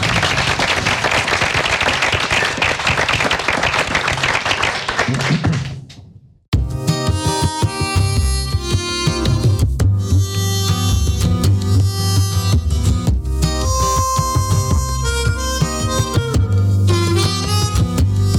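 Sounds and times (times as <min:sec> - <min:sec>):
audience applause: 0:00.0 - 0:05.7
music with a steady beat: 0:06.5 - 0:18.3.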